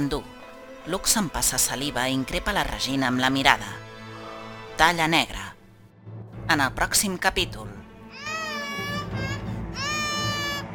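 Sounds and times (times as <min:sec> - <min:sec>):
speech: 0:00.0 - 0:03.8, 0:04.8 - 0:05.5, 0:06.5 - 0:07.8
baby girl crying in a Catalan audio drama: 0:08.1 - 0:10.7.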